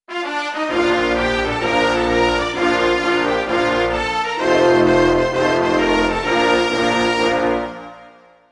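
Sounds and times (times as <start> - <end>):
national anthem music: 0.1 - 8.5.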